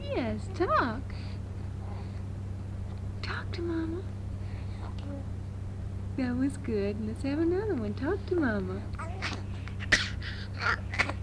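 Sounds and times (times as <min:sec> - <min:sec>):
steady low hum: 0:00.0 - 0:11.2
speech: 0:00.4 - 0:01.3, 0:03.2 - 0:04.2, 0:06.2 - 0:09.1
baby coughing: 0:09.0 - 0:11.2.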